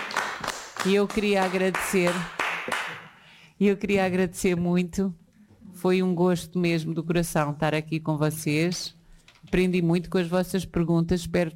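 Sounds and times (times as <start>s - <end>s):
listeners clapping for a guest speaker: 0.0s - 3.3s
speech: 0.8s - 2.9s, 3.6s - 11.5s.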